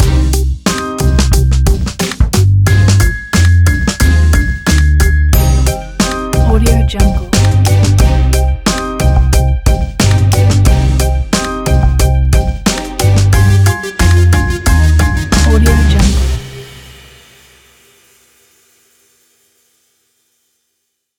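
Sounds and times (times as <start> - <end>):
hip hop music: 0.0 - 16.9.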